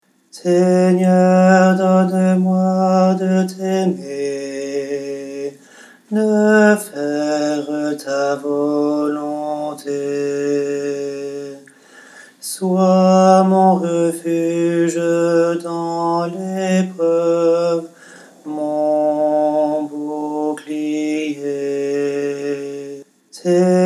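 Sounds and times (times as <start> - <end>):
alto and bass voices singing a hymn: 0.4 - 11.8, 12.4 - 23.8.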